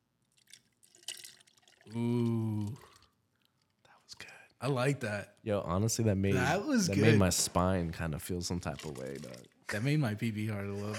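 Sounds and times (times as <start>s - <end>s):
liquid being poured: 0.2s - 3.8s, 7.0s - 10.0s
speech: 1.9s - 2.2s, 4.6s - 10.9s.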